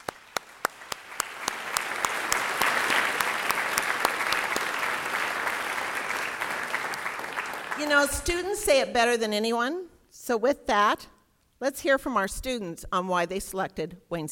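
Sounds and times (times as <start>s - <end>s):
audience applause: 0.0s - 8.2s
speech: 7.8s - 14.3s.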